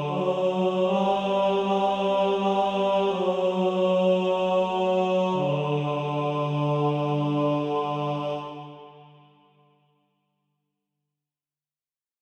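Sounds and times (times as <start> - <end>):
male choir singing: 0.0 - 9.4.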